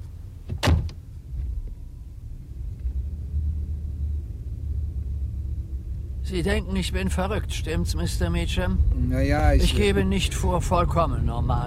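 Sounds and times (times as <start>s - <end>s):
car pulling up with low steady engine rumble: 0.0s - 11.6s
sharp clunk: 0.5s - 1.0s
speech: 6.3s - 11.6s.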